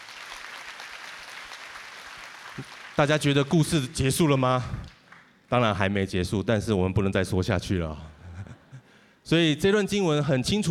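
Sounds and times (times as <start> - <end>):
crowd clapping: 0.0 - 5.4
speech: 2.6 - 4.9, 5.5 - 8.1, 9.3 - 10.6.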